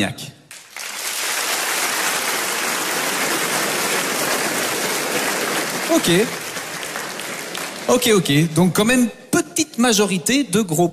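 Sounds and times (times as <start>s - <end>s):
speech: 0.0s - 0.3s, 5.9s - 6.4s, 7.9s - 10.9s
audience applause: 0.5s - 8.6s.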